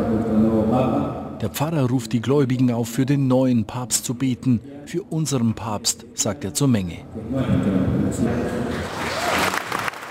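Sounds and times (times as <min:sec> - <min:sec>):
speech: 0:00.8 - 0:09.1
crowd applauding: 0:08.7 - 0:10.0.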